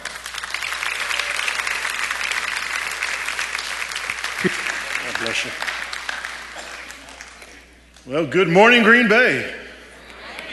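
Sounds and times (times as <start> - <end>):
crowd applause: 0.0 - 7.7
speech: 4.4 - 5.8, 8.0 - 9.6.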